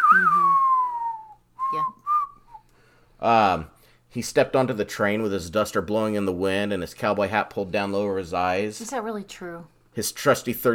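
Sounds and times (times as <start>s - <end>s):
whistled spaghetti western theme tune: 0.0s - 2.5s
speech: 3.2s - 10.7s.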